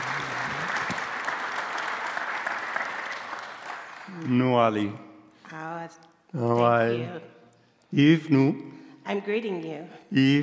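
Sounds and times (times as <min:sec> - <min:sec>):
audience applause: 0:00.0 - 0:04.6
speech: 0:04.2 - 0:10.4.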